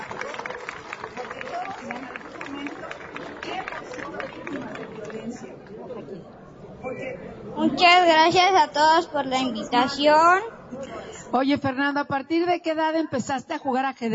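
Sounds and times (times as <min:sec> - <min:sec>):
crowd clapping: 0:00.0 - 0:05.8
speech: 0:06.2 - 0:14.1.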